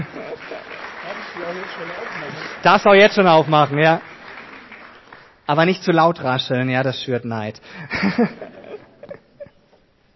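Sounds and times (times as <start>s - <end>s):
laughter: 0.0s - 2.6s, 7.8s - 9.6s
crowd applause: 0.0s - 5.8s
speech: 1.4s - 4.1s, 5.5s - 8.6s.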